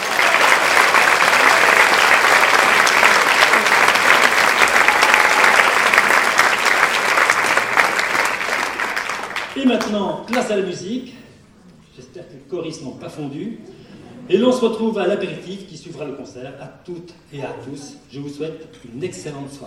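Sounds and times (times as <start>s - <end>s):
audience applause: 0.0s - 9.9s
speech: 9.8s - 11.2s, 12.0s - 19.6s.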